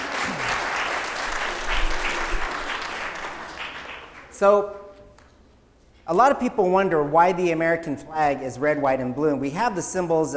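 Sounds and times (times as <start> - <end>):
audience applause: 0.0 - 4.3
speech: 4.4 - 4.8, 6.1 - 10.3.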